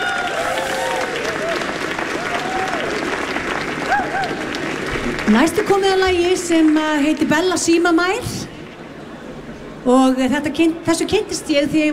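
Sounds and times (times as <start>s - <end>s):
scattered cheers and whoops from a concert audience: 0.0s - 3.2s, 3.8s - 4.6s
concert audience applauding a musician after a song: 0.0s - 7.9s
speech: 5.3s - 8.4s, 9.8s - 11.9s.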